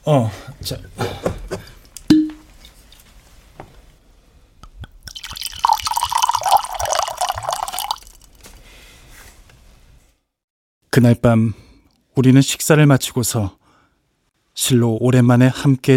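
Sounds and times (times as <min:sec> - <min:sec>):
speech: 0:00.0 - 0:01.7, 0:11.0 - 0:11.6, 0:12.2 - 0:13.6, 0:14.6 - 0:15.9
wine pouring into a glass: 0:04.8 - 0:08.4.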